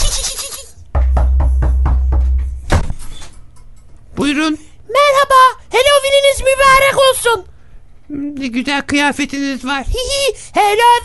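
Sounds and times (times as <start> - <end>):
knocking on a door: 0.8 - 2.9
speech: 4.2 - 7.5, 8.1 - 11.0.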